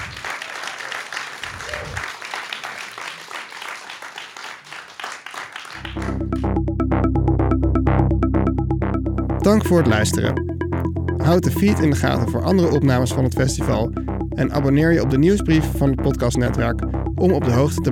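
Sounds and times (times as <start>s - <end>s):
crowd applause: 0.0s - 6.4s
music with a strong bass beat: 5.8s - 17.9s
speech: 9.5s - 10.5s, 11.2s - 17.9s.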